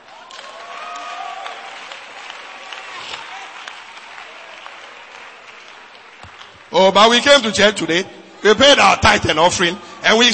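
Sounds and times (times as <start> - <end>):
audience applause: 0.0 - 6.8
speech: 6.8 - 10.3.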